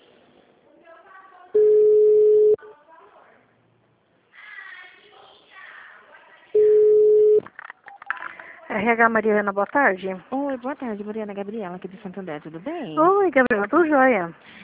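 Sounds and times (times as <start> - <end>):
telephone beeps while a call to a city hall is transferred: 1.6 - 2.6, 6.6 - 8.1
speech: 8.8 - 14.6.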